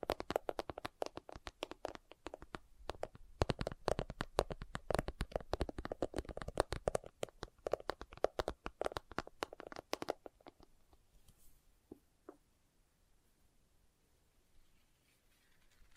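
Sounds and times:
fingers tapping on leather: 0.0s - 10.7s
faint soft rustling: 10.2s - 12.0s, 14.5s - 15.9s.

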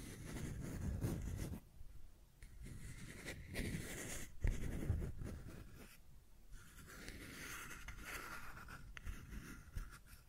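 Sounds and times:
pen or tool dragged over a surface: 0.0s - 1.6s, 2.4s - 6.0s, 6.6s - 10.2s.

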